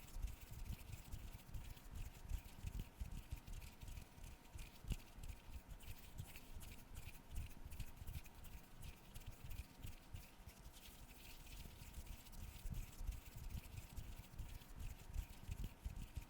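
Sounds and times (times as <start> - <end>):
camera cleaning brushing and wiping strokes: 0.0 - 16.2
faint steady hum: 0.0 - 16.2.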